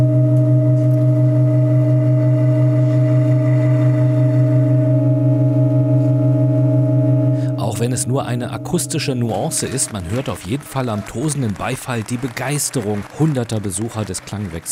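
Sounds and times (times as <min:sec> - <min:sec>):
faint higher pitch: 0:00.0 - 0:11.0
organ pipes droning chord: 0:00.0 - 0:12.2
speech: 0:08.0 - 0:14.7.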